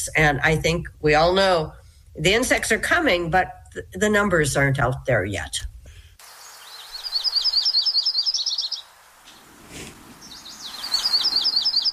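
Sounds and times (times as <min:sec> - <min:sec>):
speech: 0:00.0 - 0:05.7
yellow-rumped warbler song: 0:06.2 - 0:11.9.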